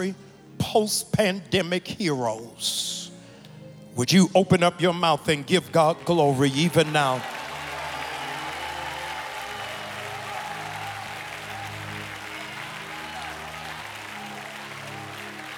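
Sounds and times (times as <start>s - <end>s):
speech: 0.0s - 3.1s, 4.0s - 7.3s
audience cheering: 5.6s - 15.5s
applause: 5.9s - 15.5s.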